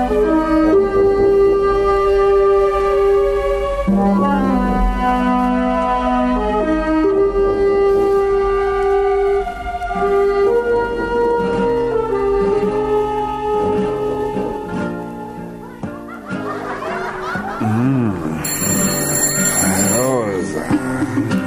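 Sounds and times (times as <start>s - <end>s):
music: 0.0s - 21.4s
people laughing: 15.6s - 21.4s
telephone ringing: 18.4s - 21.4s.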